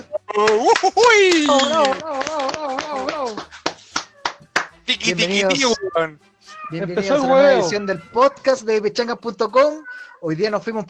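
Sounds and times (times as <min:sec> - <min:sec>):
clapping: 0:00.0 - 0:05.8
laughter: 0:00.0 - 0:10.4
speech: 0:00.4 - 0:03.4, 0:04.9 - 0:10.8.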